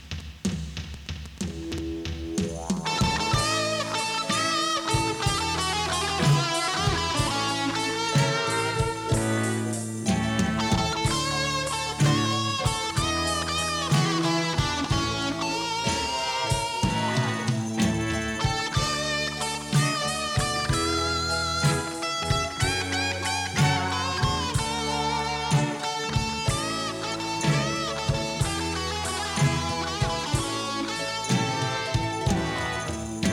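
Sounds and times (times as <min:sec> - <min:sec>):
blues music: 0:00.0 - 0:33.3.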